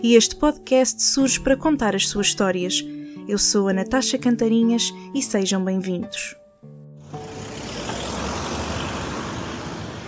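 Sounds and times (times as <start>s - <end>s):
speech: 0.0s - 6.4s
street traffic on a city avenue: 7.0s - 10.0s.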